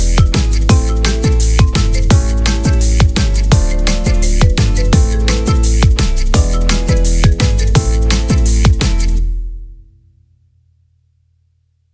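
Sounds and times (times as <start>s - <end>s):
cumbia fado music: 0.0s - 9.4s.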